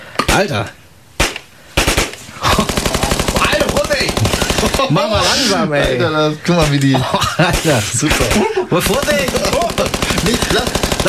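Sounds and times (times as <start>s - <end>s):
speech: 0.4s - 0.8s, 4.6s - 11.0s
Uzi submachine gun firing: 1.2s - 5.1s, 7.5s - 11.0s
laughter: 2.3s - 11.0s.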